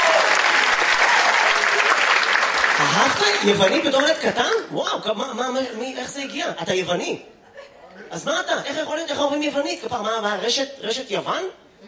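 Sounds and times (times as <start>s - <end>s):
crowd applause: 0.0s - 4.2s
speech: 3.0s - 7.4s, 8.0s - 11.6s.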